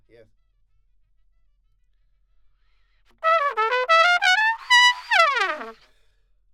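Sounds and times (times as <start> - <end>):
trumpet: 3.2 - 5.8.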